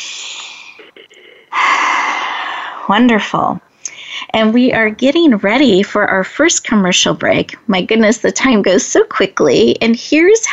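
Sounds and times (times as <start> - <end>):
group taking a deep breath together during a guided pause: 0.0 - 2.9
speech: 2.9 - 3.7, 4.4 - 10.5.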